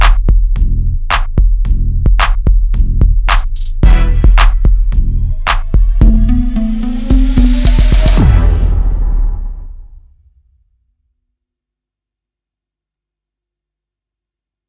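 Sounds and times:
hip hop beat: 0.0 - 8.9.

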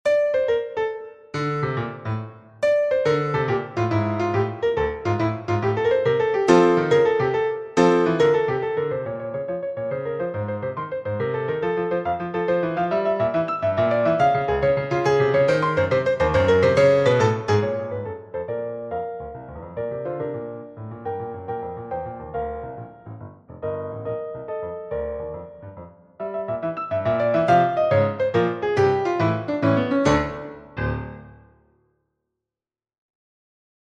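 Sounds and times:
prelude: 0.1 - 31.6.

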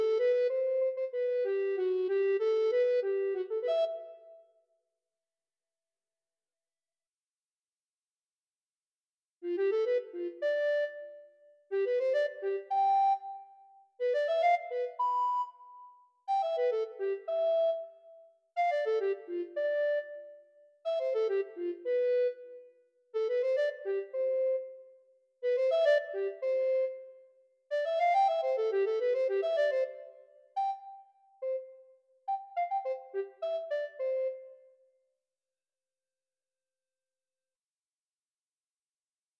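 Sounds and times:
alto recorder piece: 0.0 - 4.6, 9.4 - 35.0.

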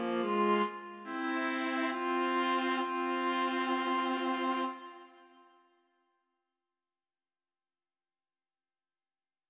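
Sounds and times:
viola soliloquy: 0.2 - 5.3.

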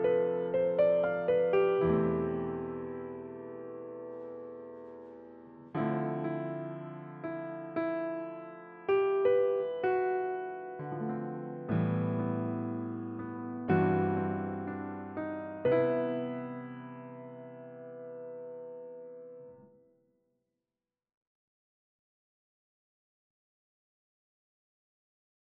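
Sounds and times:
piano: 0.0 - 20.0.

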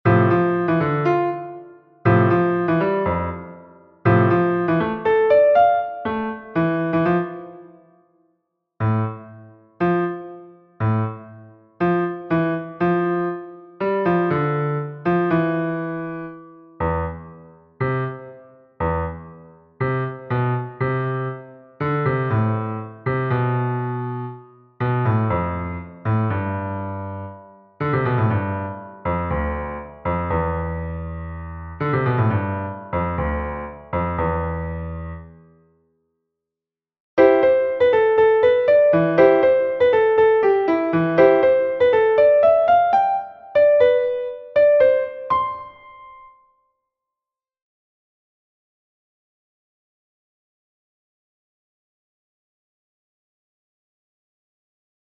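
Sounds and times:
two melodies: 0.1 - 7.8, 8.8 - 35.3, 37.2 - 46.4.

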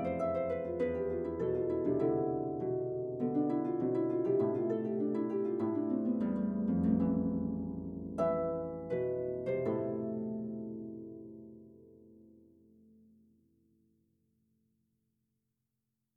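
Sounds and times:
harp solo: 0.0 - 12.8.

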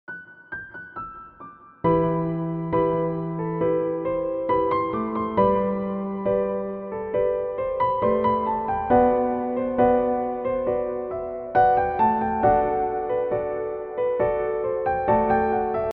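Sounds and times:
piano ballad: 0.1 - 15.9.

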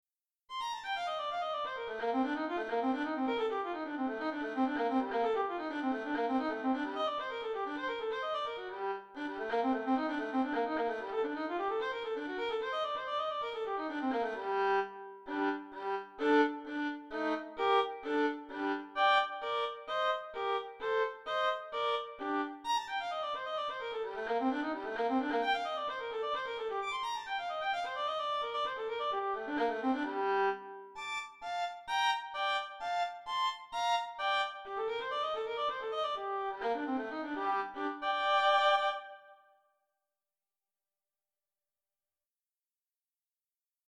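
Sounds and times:
solo violin caprice: 0.7 - 39.5.

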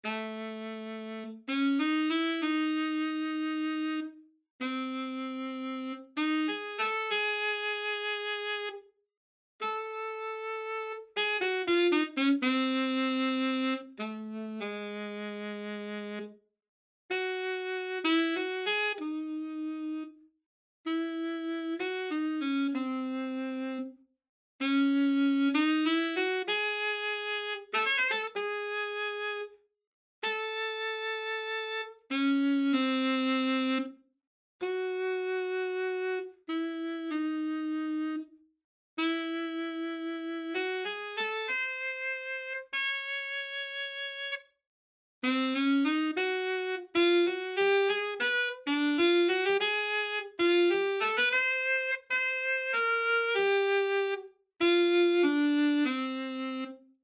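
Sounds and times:
saxophone solo: 0.0 - 8.9, 9.6 - 16.4, 17.1 - 20.2, 20.9 - 24.0, 24.6 - 29.6, 30.2 - 34.0, 34.6 - 38.4, 39.0 - 44.5, 45.2 - 56.9.

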